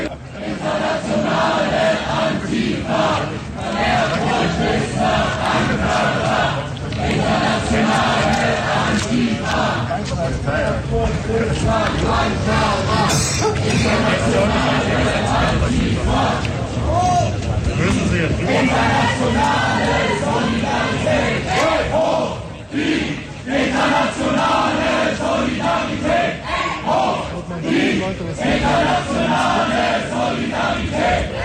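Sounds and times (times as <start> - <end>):
detained protesters chanting on Cyriakstraße in Gotha: 0.0 - 17.0, 17.8 - 31.4.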